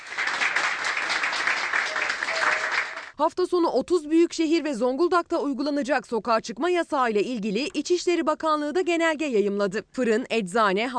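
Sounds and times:
people applauding as recovered patients are discharged: 0.0s - 3.2s
speech: 3.2s - 10.9s.

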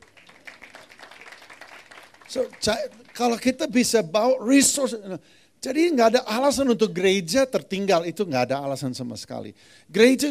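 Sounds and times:
audience applause: 0.0s - 3.5s
speech: 2.3s - 10.2s.

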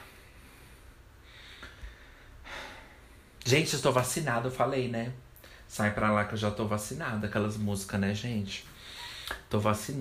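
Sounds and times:
person inhaling sharply: 0.0s - 3.4s, 8.7s - 9.4s
speech: 3.4s - 9.9s.

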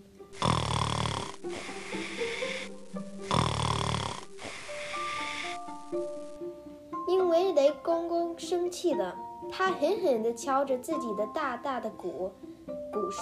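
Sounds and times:
snoring: 0.4s - 5.7s
speech: 1.4s - 3.4s, 7.3s - 13.1s.

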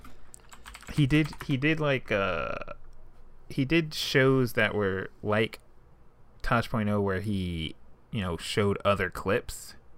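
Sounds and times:
computer keyboard typing: 0.0s - 1.6s
speech: 1.0s - 2.7s, 3.5s - 5.6s, 6.5s - 9.8s.

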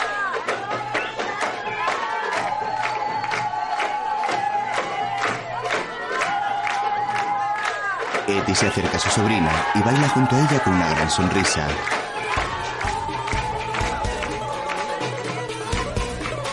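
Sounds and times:
hand clapping to rhythm of festive music: 0.0s - 16.5s
festive music: 8.2s - 16.5s
speech: 8.3s - 12.0s.

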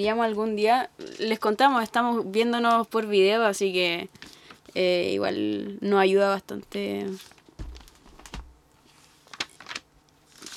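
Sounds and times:
speech: 0.0s - 7.4s
paper pages being turned: 7.0s - 10.5s.

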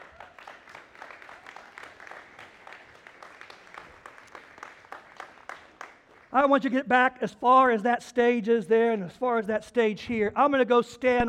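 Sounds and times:
crowd applauding: 0.0s - 6.5s
speech: 6.3s - 11.2s.

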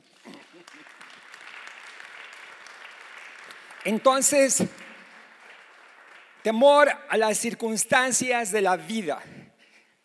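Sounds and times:
applause: 0.0s - 9.1s
speech: 3.8s - 4.8s, 6.4s - 9.4s.

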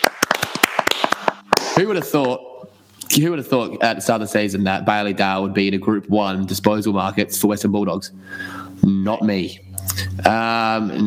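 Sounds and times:
sharp hand claps: 0.0s - 2.4s
speech: 1.8s - 2.5s, 3.1s - 11.0s.

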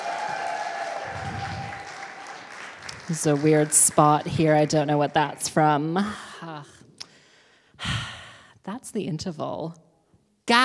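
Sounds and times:
crowd applauding: 0.0s - 5.6s
speech: 3.1s - 6.3s, 8.9s - 9.8s, 10.5s - 10.6s.

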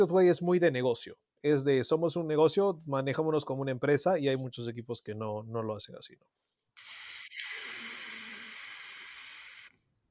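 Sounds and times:
speech: 0.0s - 7.0s
airy hiss: 6.8s - 9.8s.

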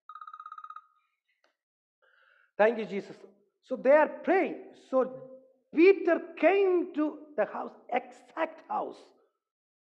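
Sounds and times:
alarm ringing: 0.0s - 1.0s
speech: 2.6s - 9.2s.

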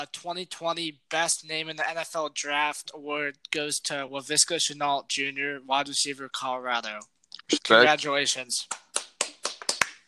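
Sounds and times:
speech: 0.0s - 8.8s
hands clapping: 7.6s - 10.0s.

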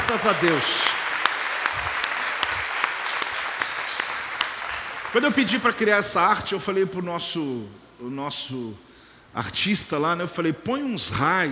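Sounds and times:
audience applause: 0.0s - 5.9s
speech: 0.1s - 0.9s, 5.2s - 11.5s.

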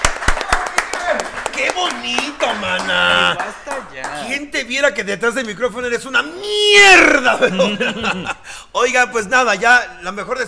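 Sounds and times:
applause: 0.0s - 4.3s
speech: 1.8s - 10.4s
laughter: 2.4s - 3.8s, 6.8s - 8.6s.

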